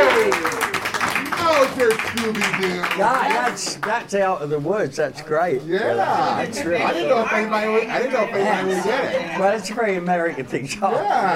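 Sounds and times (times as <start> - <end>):
faint scattered audience clapping: 0.0 - 4.2
speech: 2.2 - 11.3.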